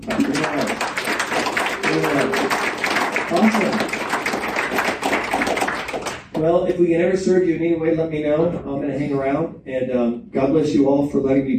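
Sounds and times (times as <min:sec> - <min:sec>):
audience clapping: 0:00.0 - 0:06.5
speech: 0:06.4 - 0:11.5.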